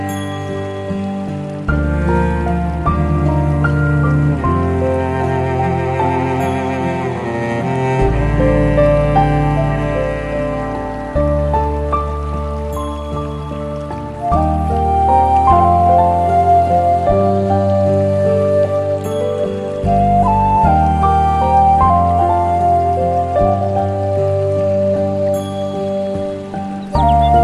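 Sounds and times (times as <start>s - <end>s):
Japanese music: 0.0s - 27.4s
stream flowing: 0.0s - 27.4s
birds: 26.2s - 27.4s.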